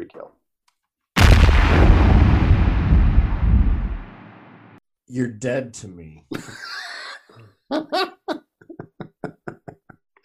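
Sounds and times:
explosion sound effect: 0:01.2 - 0:04.8
speech: 0:05.1 - 0:08.1
laughter: 0:06.3 - 0:10.0.

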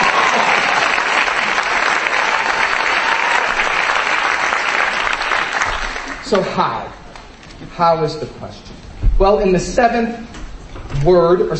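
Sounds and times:
audience applause: 0:00.0 - 0:06.6
speech: 0:06.3 - 0:07.0, 0:07.6 - 0:10.4, 0:11.0 - 0:11.5.

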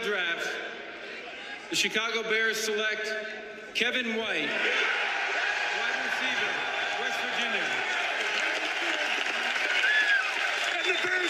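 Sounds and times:
speech: 0:00.0 - 0:00.5, 0:01.7 - 0:05.0, 0:10.9 - 0:11.2
crowd applauding and cheering: 0:04.6 - 0:11.2.

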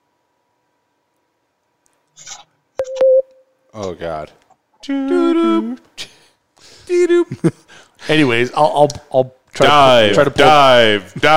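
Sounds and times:
Skype call tone like a sonar beep: 0:02.8 - 0:03.4
speech: 0:03.8 - 0:05.9, 0:06.9 - 0:11.3.

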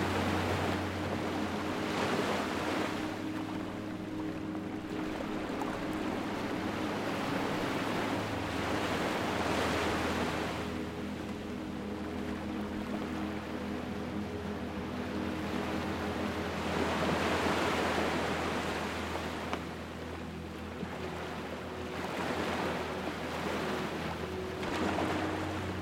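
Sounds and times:
faint engine-like drone: 0:00.0 - 0:25.8
low constant hum: 0:00.0 - 0:25.8
waves washing onto the shore: 0:00.0 - 0:25.8.

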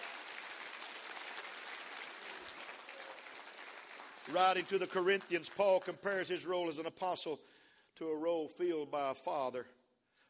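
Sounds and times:
audience clapping hands: 0:00.0 - 0:06.4
speech: 0:04.3 - 0:09.8.

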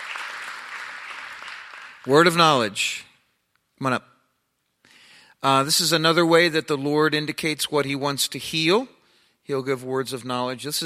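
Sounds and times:
audience applause: 0:00.0 - 0:02.3
speech: 0:02.0 - 0:03.1, 0:03.8 - 0:04.1, 0:05.4 - 0:10.8.

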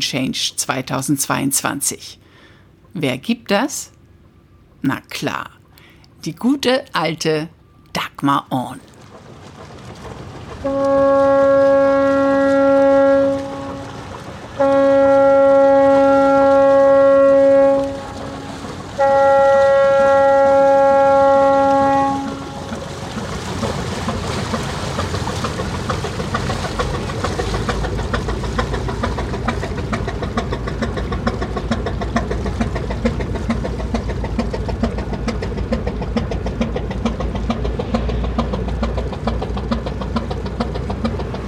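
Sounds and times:
speech: 0:00.0 - 0:02.3, 0:02.9 - 0:04.0, 0:04.8 - 0:05.6, 0:06.2 - 0:08.9, 0:10.6 - 0:11.8
rumbling engine: 0:09.0 - 0:41.4
ship horn blasts: 0:10.6 - 0:23.2.

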